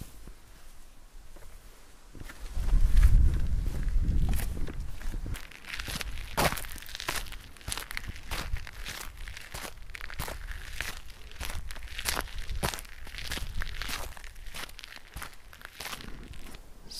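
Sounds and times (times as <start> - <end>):
footsteps crunching through forest undergrowth: 1.3 - 16.6.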